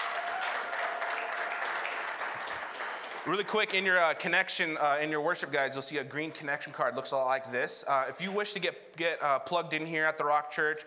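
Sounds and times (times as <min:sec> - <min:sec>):
audience applause at a church service at the Rock Church: 0:00.0 - 0:03.8
speech: 0:03.2 - 0:10.8.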